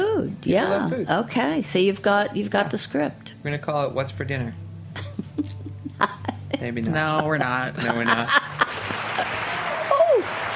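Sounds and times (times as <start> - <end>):
speech: 0.4 - 4.6, 5.4 - 8.4
laughter: 5.0 - 10.5
crowd applause: 7.9 - 10.5.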